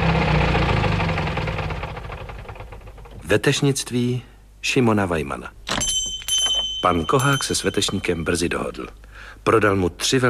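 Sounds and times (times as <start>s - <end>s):
car engine with low knocking idle: 0.0s - 3.2s
speech: 3.3s - 5.6s, 6.8s - 10.2s.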